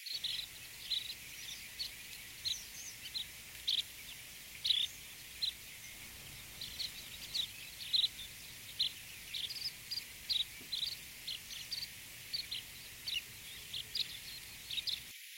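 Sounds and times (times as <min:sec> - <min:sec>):
curlew sandpiper song: 0:00.2 - 0:15.1.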